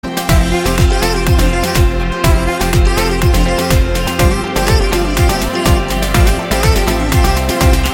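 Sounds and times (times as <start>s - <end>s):
romantic background music: 0.0s - 7.9s.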